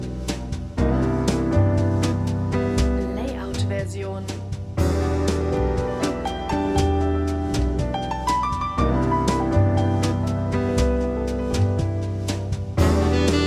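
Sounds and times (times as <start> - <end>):
smooth jazz music: 0.0 - 13.4.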